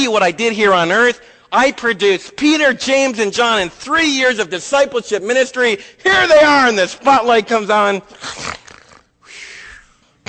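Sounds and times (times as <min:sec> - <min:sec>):
speech: 0:00.0 - 0:08.6
person imitating snoring: 0:08.2 - 0:09.1.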